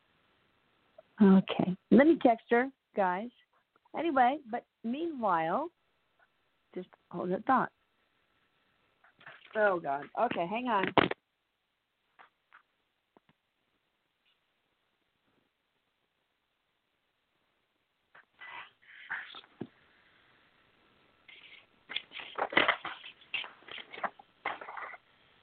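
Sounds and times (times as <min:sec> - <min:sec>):
speech: 0:01.2 - 0:05.8, 0:06.7 - 0:07.8, 0:09.5 - 0:11.2
paper rattling: 0:21.3 - 0:25.0.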